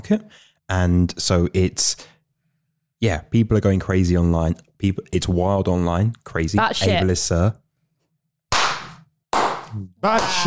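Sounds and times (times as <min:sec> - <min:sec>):
speech: 0:00.0 - 0:02.1, 0:03.0 - 0:07.6, 0:09.7 - 0:10.4
stock slow clap applause sound effect: 0:08.5 - 0:10.4.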